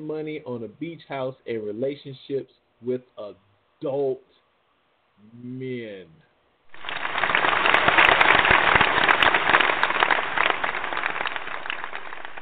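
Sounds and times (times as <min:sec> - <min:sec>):
speech: 0:00.0 - 0:04.4, 0:05.2 - 0:06.2
people clapping: 0:06.7 - 0:12.4.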